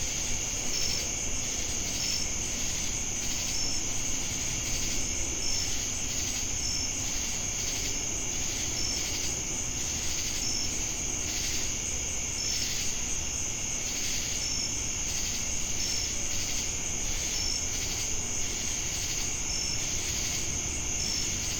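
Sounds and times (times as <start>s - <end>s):
crickets trilling in Jamestown, North Carolina: 0.0s - 21.5s.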